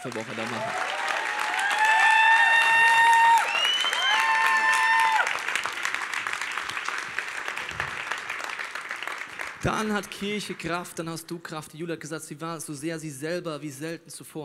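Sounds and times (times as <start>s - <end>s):
speech: 0.0s - 1.0s, 9.6s - 14.4s
audience applause: 0.0s - 10.9s.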